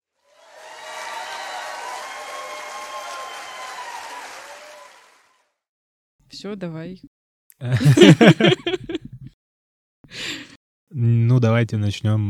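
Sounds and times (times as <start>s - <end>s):
applause sound effect: 0.2s - 5.6s
speech: 6.3s - 8.6s, 11.4s - 12.2s
laughter: 7.6s - 9.3s.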